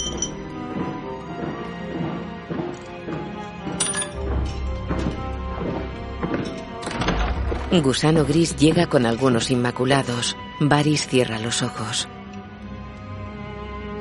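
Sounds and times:
rings dropped into a cup: 0:00.0 - 0:00.4
steady tonal background: 0:00.0 - 0:13.9
speech: 0:07.7 - 0:12.2.

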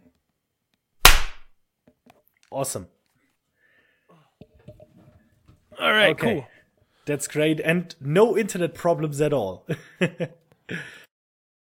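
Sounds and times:
hand clap: 0:01.1 - 0:01.5
speech: 0:02.5 - 0:03.0, 0:05.8 - 0:06.5, 0:07.1 - 0:11.0.

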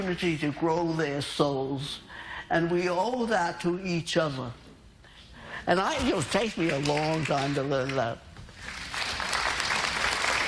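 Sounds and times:
speech: 0:00.0 - 0:04.6, 0:05.6 - 0:08.2
audience clapping: 0:06.0 - 0:10.4.

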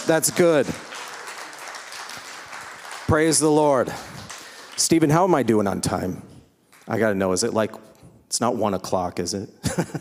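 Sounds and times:
audience clapping: 0:00.0 - 0:05.6, 0:06.7 - 0:07.1
speech: 0:00.1 - 0:01.0, 0:03.1 - 0:04.2, 0:04.8 - 0:06.3, 0:06.9 - 0:09.9.

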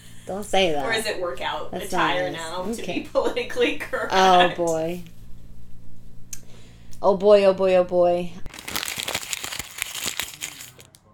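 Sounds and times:
speech: 0:00.3 - 0:05.2, 0:07.0 - 0:08.5
plastic snack bag crinkling: 0:08.5 - 0:11.0.

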